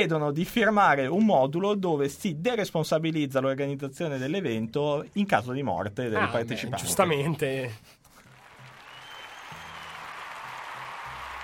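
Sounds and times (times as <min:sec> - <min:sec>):
speech: 0:00.0 - 0:08.0
crowd clapping: 0:08.1 - 0:11.4.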